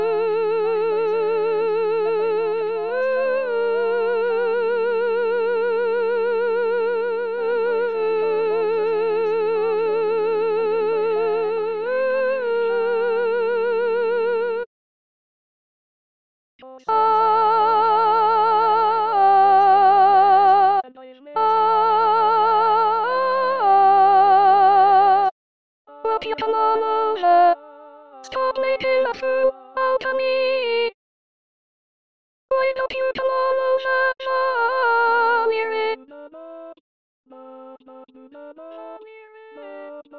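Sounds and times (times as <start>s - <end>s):
lead soprano singing in SATB choir: 0.0s - 14.7s, 16.8s - 25.3s, 26.0s - 31.0s, 32.5s - 40.1s.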